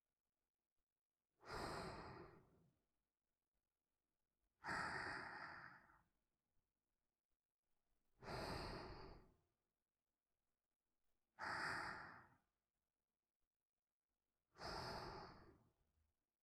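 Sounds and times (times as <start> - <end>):
person breathing in sleep: 1.4 - 2.6, 4.6 - 6.1, 8.2 - 9.4, 11.4 - 12.5, 14.5 - 15.8.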